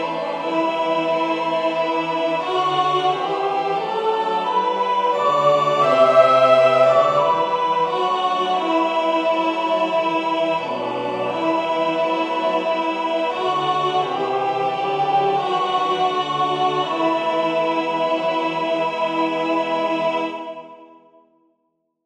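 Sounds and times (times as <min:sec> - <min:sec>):
soprano singing: 0:00.0 - 0:20.6
synth: 0:04.9 - 0:08.8.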